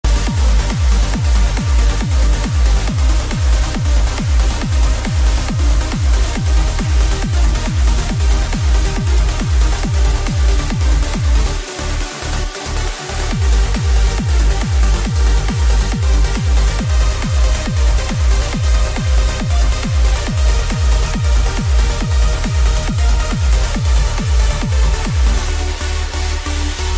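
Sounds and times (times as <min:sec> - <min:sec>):
euphoric trance music: 0:00.0 - 0:26.9.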